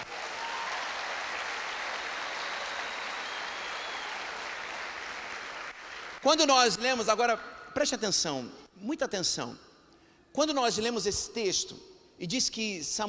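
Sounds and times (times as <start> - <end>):
audience applauding: 0.0 - 6.3
speech: 6.2 - 9.7, 10.4 - 13.0.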